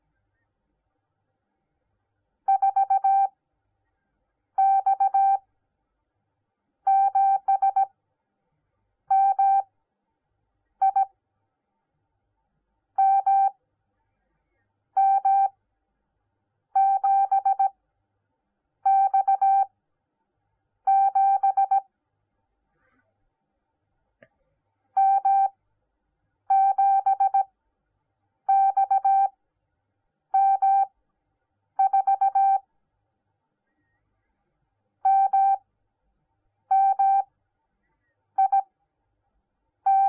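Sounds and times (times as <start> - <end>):
morse code beeps: 2.5 - 3.3, 4.6 - 5.4, 6.9 - 7.9, 9.1 - 9.7, 10.8 - 11.1, 13.0 - 13.6, 15.0 - 15.5, 16.8 - 17.7, 18.9 - 19.7, 20.9 - 21.8, 25.0 - 25.6, 26.5 - 27.5, 28.5 - 29.3, 30.4 - 30.9, 31.8 - 32.6, 35.1 - 35.6, 36.7 - 37.3, 38.4 - 38.7, 39.9 - 40.0.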